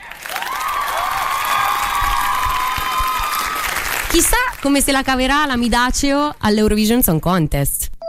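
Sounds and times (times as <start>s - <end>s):
crowd cheering and whoops: 0.0s - 3.9s
crowd applause: 0.0s - 4.6s
speech: 4.2s - 7.8s.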